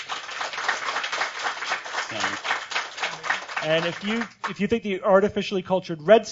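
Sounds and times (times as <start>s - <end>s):
audience applause: 0.0s - 4.7s
speech: 2.1s - 2.5s, 3.6s - 6.3s.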